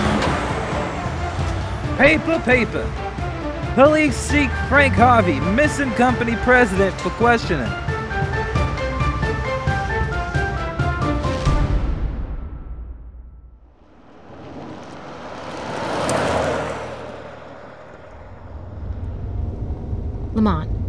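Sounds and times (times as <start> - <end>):
car engine roar: 0.0 - 11.2, 13.8 - 20.8
rhythmic tonal music: 0.0 - 11.7
speech: 2.0 - 3.0, 3.8 - 7.8, 20.4 - 20.7.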